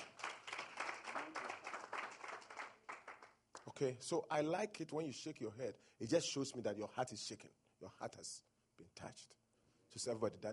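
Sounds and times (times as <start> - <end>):
audience clapping: 0.0 - 3.7
speech: 3.7 - 10.5.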